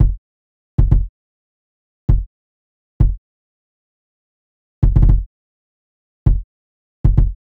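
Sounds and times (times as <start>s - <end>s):
kick drum at 115 bpm: 0.0s - 0.2s, 0.8s - 1.1s, 2.1s - 2.3s, 3.0s - 3.2s, 4.8s - 5.3s, 6.3s - 7.4s.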